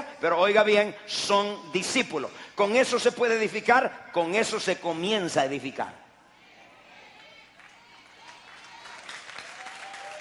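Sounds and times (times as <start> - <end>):
speech: 0.2 - 6.0
applause from a church congregation: 7.6 - 10.1.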